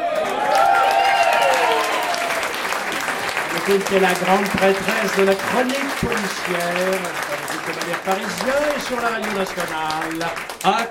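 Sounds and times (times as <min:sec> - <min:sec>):
cheers and whistles: 0:00.0 - 0:02.5
crowd applauding: 0:00.0 - 0:10.8
speech: 0:03.7 - 0:10.8.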